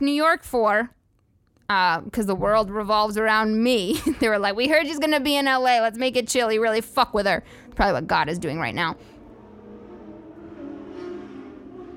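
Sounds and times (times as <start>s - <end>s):
speech: 0.0s - 1.0s, 1.7s - 9.1s
motorcycle engine droning as it passes: 7.4s - 11.9s.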